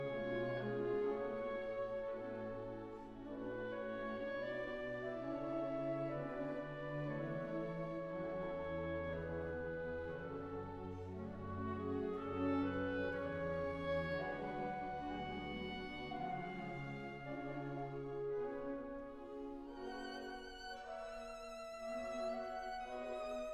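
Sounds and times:
orchestra playing a suite: 0.0 - 23.5.

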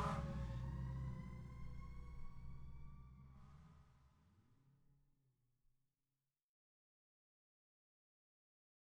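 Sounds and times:
fire department emergency response: 0.0 - 3.7.

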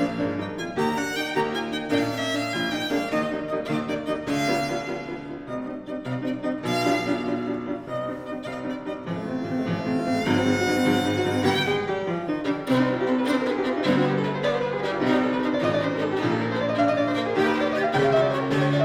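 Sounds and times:
violin and piano sonata movement in E flat major: 0.0 - 18.8.

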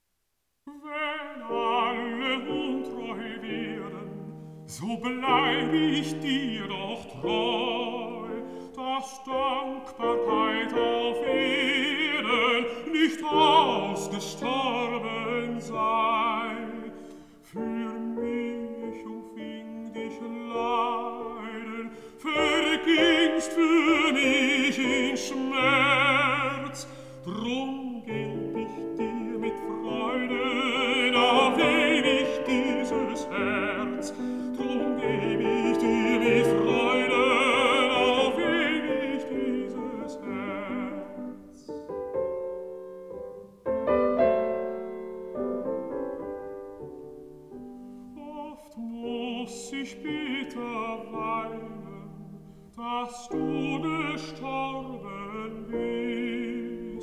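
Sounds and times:
piano: 0.0 - 57.0
person singing: 0.7 - 41.9, 48.0 - 57.0.

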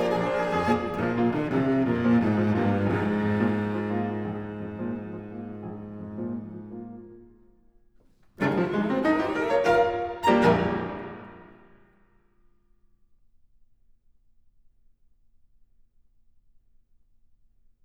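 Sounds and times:
prelude music: 0.0 - 7.4, 8.4 - 11.8.

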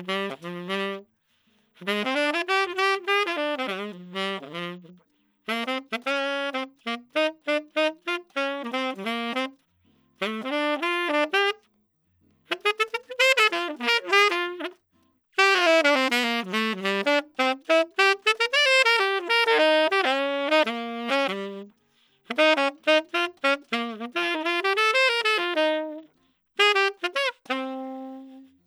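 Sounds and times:
walking saxophone line panned left center right: 0.0 - 1.0, 1.8 - 9.6, 10.2 - 11.6, 12.5 - 14.8, 15.4 - 21.7, 22.3 - 28.6.

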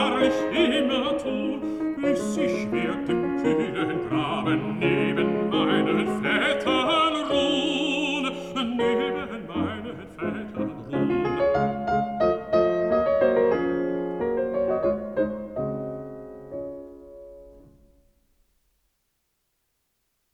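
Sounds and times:
person singing: 0.0 - 11.6
piano: 0.0 - 18.9.

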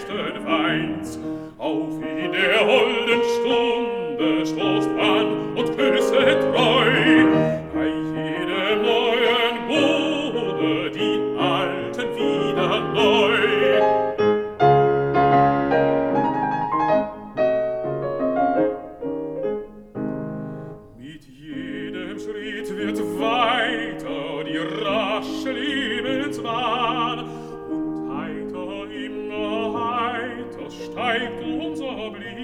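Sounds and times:
person singing a song: 0.0 - 14.2, 20.9 - 32.4
piano accompanying a song: 0.0 - 32.4.

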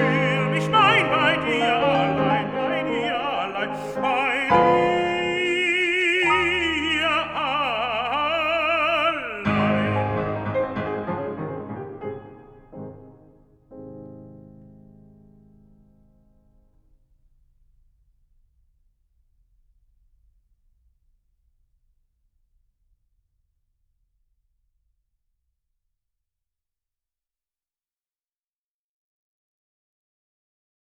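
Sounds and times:
person singing with piano: 0.0 - 12.4.

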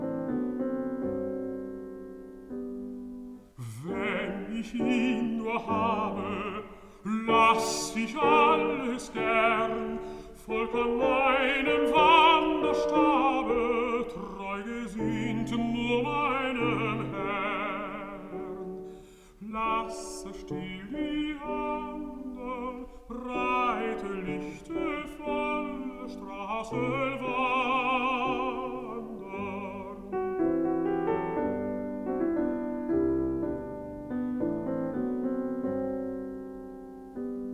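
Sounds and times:
piano: 0.0 - 37.5
person singing: 3.6 - 30.7.

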